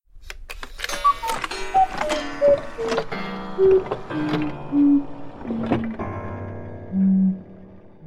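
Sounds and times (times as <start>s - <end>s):
cuckoo-like hooting tones: 1.0s - 5.1s
clock ticking: 1.0s - 6.0s.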